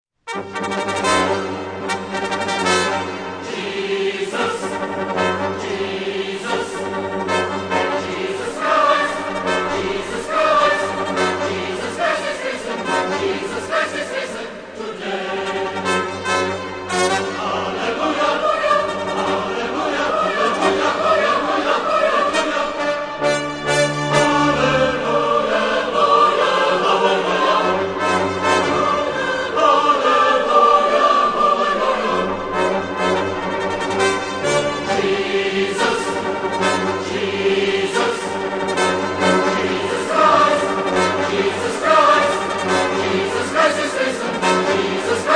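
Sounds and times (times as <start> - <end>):
Easter fanfare: 0.3 - 14.2, 15.0 - 45.3.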